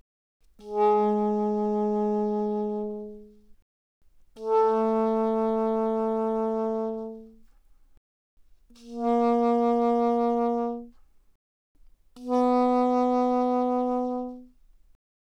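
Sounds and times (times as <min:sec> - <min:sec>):
soprano saxophone vibrato pianissimo on Ab3 and B3: 0:00.6 - 0:03.4, 0:04.4 - 0:07.4, 0:08.7 - 0:11.0, 0:12.2 - 0:14.5.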